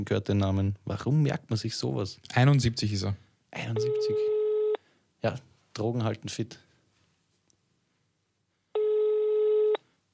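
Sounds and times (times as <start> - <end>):
speech: 0.0 - 4.3, 5.2 - 6.7
telephone ringing tone: 3.8 - 4.8, 8.8 - 9.8.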